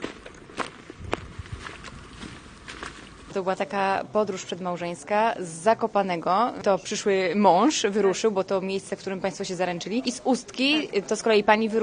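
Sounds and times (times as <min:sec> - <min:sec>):
footsteps walking: 0:00.0 - 0:03.4
speech: 0:03.4 - 0:11.8.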